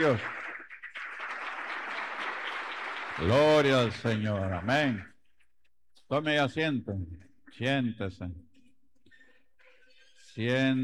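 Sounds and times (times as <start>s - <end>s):
speech: 0.0s - 0.4s, 3.2s - 5.1s, 6.1s - 8.5s, 10.4s - 10.8s
audience applause: 0.0s - 5.1s.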